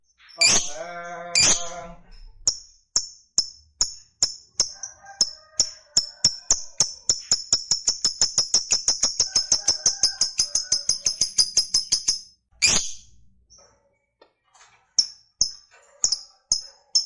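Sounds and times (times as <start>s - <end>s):
lovebird squawks and chirps: 0.2s - 2.6s, 4.6s - 13.1s.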